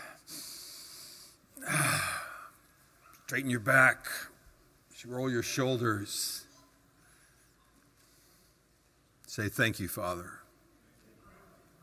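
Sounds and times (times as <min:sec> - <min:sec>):
deep breathing during a guided prayer session: 0:00.0 - 0:02.6
speech: 0:03.3 - 0:04.3, 0:05.0 - 0:06.5, 0:09.3 - 0:10.4.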